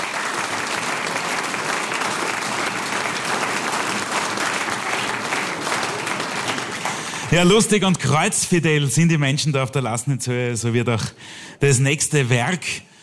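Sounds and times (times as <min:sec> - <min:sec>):
audience applause: 0:00.0 - 0:07.9
speech: 0:07.3 - 0:12.9.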